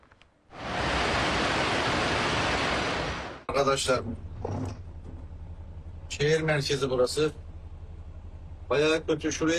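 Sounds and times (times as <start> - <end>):
floodwater from overflowing streams rushing through city centre streets: 0.5 - 3.4
speech: 3.5 - 4.8, 6.1 - 7.4, 8.7 - 9.5.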